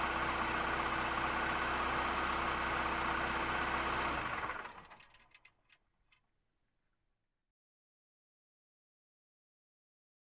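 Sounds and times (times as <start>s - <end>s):
car driving on dirt road: 0.0s - 5.7s.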